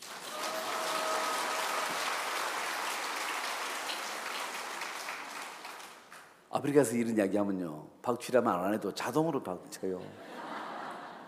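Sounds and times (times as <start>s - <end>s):
audience applause: 0.0s - 6.2s
speech: 6.6s - 10.3s
laughter: 10.1s - 11.2s.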